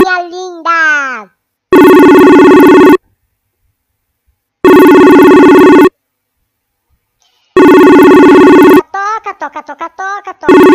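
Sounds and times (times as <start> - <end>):
telephone ringing with no answer: 1.7 - 3.0, 4.6 - 6.0, 7.6 - 8.8, 10.5 - 10.7.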